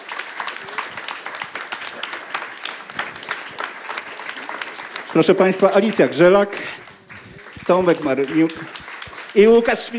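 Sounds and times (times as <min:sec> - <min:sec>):
audience applause: 0:00.0 - 0:09.9
speech: 0:05.2 - 0:06.8, 0:07.7 - 0:09.9.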